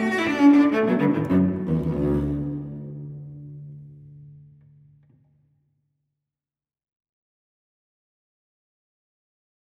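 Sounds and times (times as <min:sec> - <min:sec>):
solo cello baroque gigue in D major: 0:00.0 - 0:05.2.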